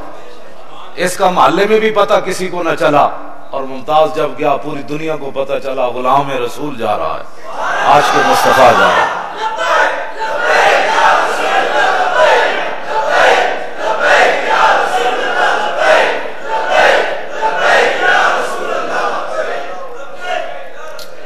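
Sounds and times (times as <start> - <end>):
speech: 1.0 - 9.6
large crowd chanting a slogan: 7.4 - 21.2.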